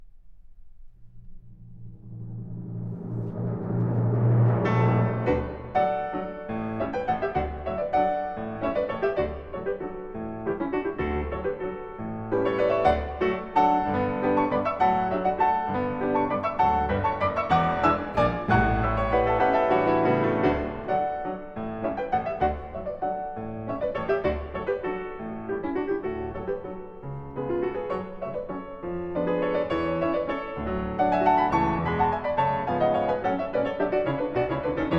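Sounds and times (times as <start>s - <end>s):
piano concerto solo piano: 0.0s - 34.9s
orchestra playing: 2.1s - 7.9s, 12.4s - 21.1s.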